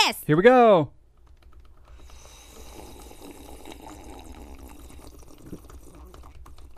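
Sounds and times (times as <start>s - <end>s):
slurping tea from a cup: 1.9s - 6.7s.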